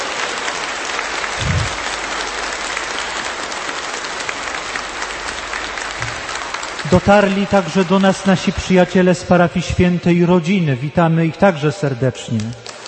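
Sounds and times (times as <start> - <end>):
audience applause: 0.0 - 9.1, 12.3 - 12.8
speech: 6.9 - 12.7.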